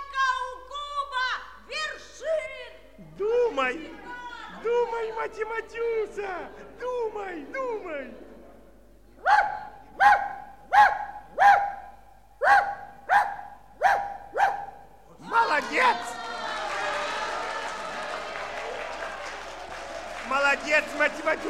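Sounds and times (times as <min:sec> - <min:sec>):
crowd noise: 0:01.5 - 0:13.4, 0:14.5 - 0:21.4
speech: 0:04.6 - 0:08.3
dog barking: 0:09.2 - 0:14.9
clapping: 0:15.4 - 0:21.4.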